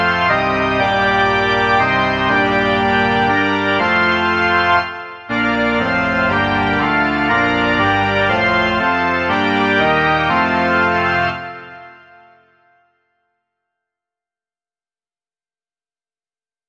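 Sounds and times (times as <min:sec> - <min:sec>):
organ: 0:00.0 - 0:12.7.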